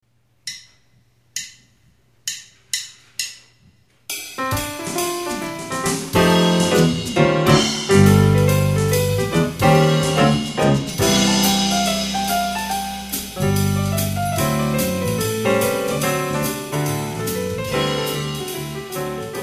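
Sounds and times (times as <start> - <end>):
jazz music: 4.2 - 19.4.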